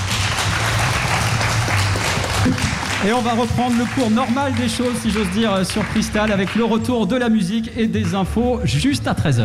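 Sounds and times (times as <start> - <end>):
studio audience applause at the close of a French radio show: 0.0 - 6.7
speech: 2.5 - 9.4.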